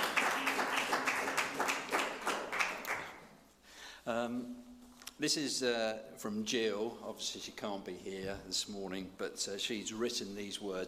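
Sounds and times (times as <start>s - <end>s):
small group clapping: 0.0s - 3.4s
speech: 4.1s - 10.8s.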